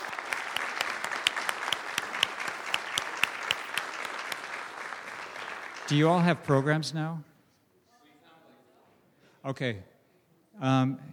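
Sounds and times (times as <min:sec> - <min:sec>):
audience applause: 0:00.0 - 0:06.8
speech: 0:05.9 - 0:07.3, 0:09.4 - 0:09.9, 0:10.6 - 0:11.1.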